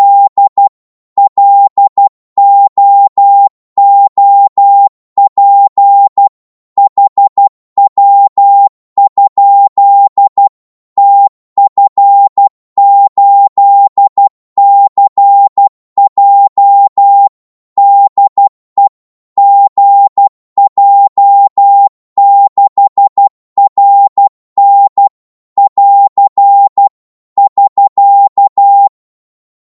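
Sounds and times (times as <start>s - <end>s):
Morse code QSO at 12 wpm: 0.0s - 29.0s.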